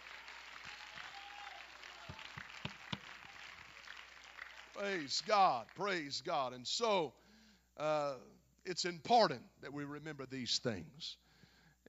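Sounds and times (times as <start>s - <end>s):
audience clapping hands: 0.0s - 6.2s
speech: 4.8s - 7.2s, 7.8s - 11.2s.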